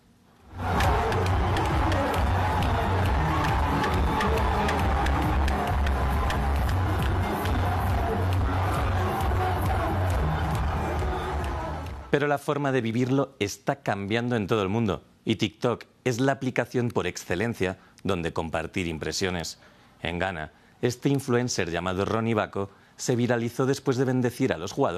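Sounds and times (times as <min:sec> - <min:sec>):
Senegal football fans celebrating goals: 0:00.5 - 0:12.2
speech: 0:12.2 - 0:24.9.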